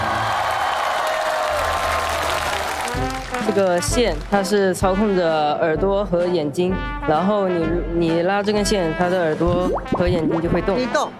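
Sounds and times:
audience applause: 0:00.0 - 0:03.9
speech: 0:03.5 - 0:11.1.

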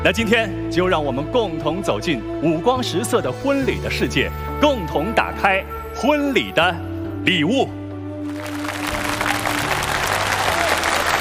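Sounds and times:
speech: 0:00.0 - 0:07.8
audience applause: 0:08.3 - 0:11.1.

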